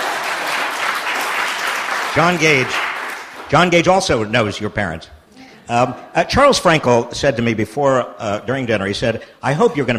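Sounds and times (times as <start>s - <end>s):
audience applauding: 0.0s - 3.7s
speech: 2.1s - 2.9s, 3.5s - 9.9s.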